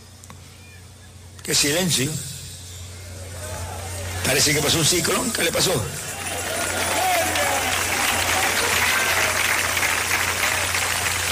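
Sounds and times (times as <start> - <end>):
speech: 1.5 - 2.3, 4.3 - 6.5
audience applauding: 6.0 - 11.3.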